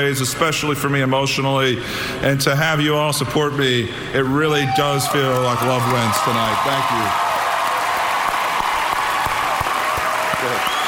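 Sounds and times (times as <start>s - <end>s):
speech: 0.0s - 7.3s
audience applause: 5.1s - 10.8s.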